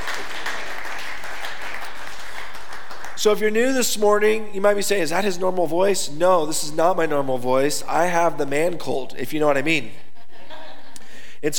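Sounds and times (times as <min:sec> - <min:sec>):
crowd clapping: 0:00.0 - 0:03.4
speech: 0:03.2 - 0:10.0, 0:11.4 - 0:11.5
laughter: 0:10.2 - 0:11.2.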